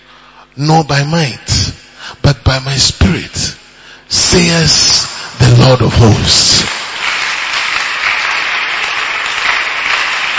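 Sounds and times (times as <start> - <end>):
speech: 0.5 - 1.5, 2.3 - 6.7
audience clapping: 6.4 - 10.3.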